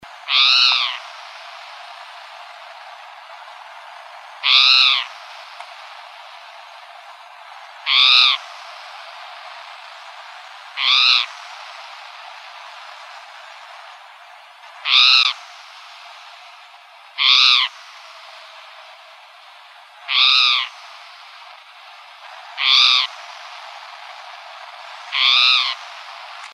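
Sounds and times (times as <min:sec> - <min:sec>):
Emberizid bunting calls: 0:00.2 - 0:03.4, 0:04.4 - 0:06.4, 0:07.8 - 0:10.0, 0:10.6 - 0:13.2, 0:14.8 - 0:16.5, 0:17.2 - 0:18.9, 0:20.0 - 0:26.5.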